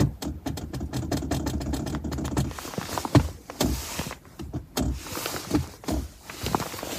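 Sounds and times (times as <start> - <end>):
loose sliding car console cover rattling: 0.0 - 6.9.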